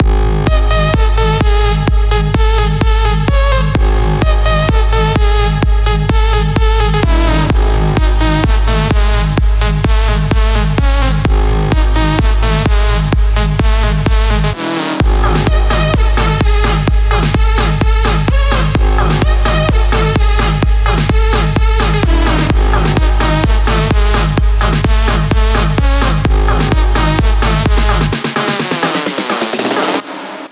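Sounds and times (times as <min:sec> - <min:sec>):
drum kit mix: 0:00.0 - 0:30.5.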